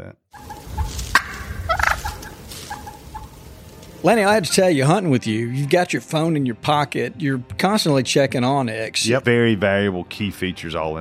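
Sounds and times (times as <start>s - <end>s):
wild turkey gobbling: 0.3s - 4.4s
speech: 4.0s - 10.9s.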